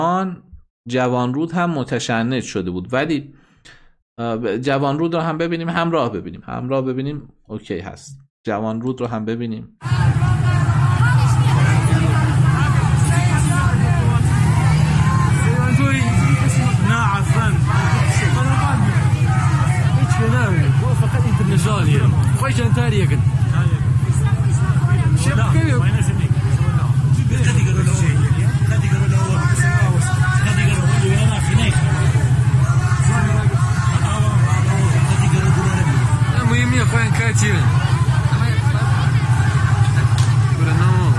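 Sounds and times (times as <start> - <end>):
speech: 0.0 - 10.2, 21.6 - 23.8, 36.9 - 37.9
street protest crowd: 9.8 - 41.1
traffic: 9.8 - 41.1.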